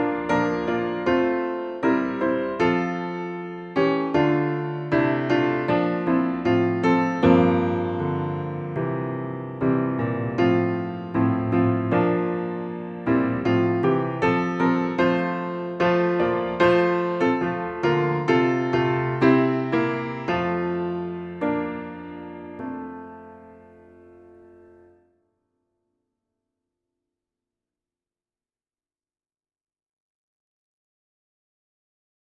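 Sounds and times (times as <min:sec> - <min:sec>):
piano: 0:00.0 - 0:25.2.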